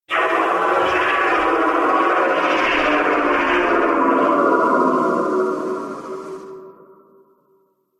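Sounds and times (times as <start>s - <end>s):
sci-fi laser mining beam: 0.1s - 7.2s.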